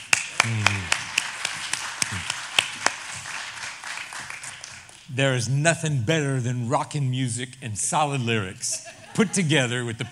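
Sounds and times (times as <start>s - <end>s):
audience applause: 0.0s - 5.0s
laughter: 0.4s - 1.1s, 2.0s - 2.4s, 8.6s - 10.1s
speech: 5.2s - 10.1s.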